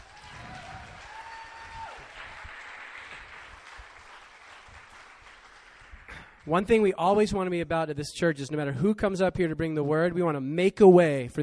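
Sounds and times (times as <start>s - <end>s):
round of applause: 0.0s - 6.9s
speech: 6.4s - 11.4s.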